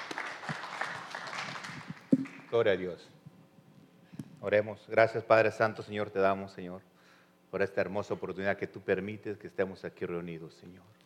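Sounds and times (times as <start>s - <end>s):
audience clapping hands: 0.0s - 2.8s
speech: 2.5s - 3.2s, 4.4s - 6.9s, 7.5s - 11.0s.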